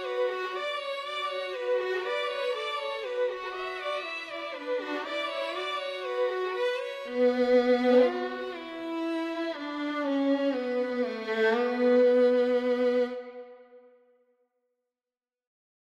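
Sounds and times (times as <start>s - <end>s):
second violin: 0.0s - 14.0s.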